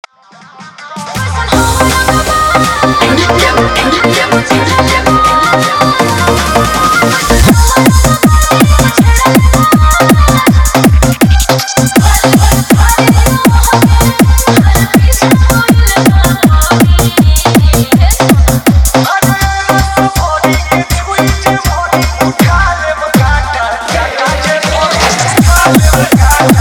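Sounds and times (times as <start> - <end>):
Bhojpuri dance mix with extra bass: 0.3 - 26.6.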